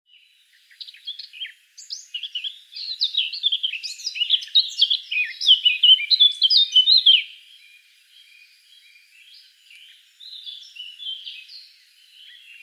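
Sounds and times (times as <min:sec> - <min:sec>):
Eurasian blackcap Sylvia atricapilla warbling song: 0:00.1 - 0:12.6.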